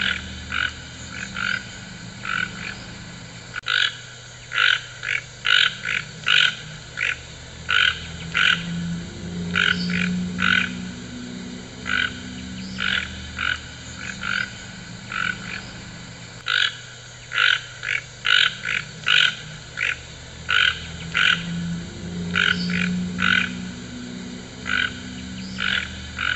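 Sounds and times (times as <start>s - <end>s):
toucan harsh grating croaks: 0.0s - 26.3s.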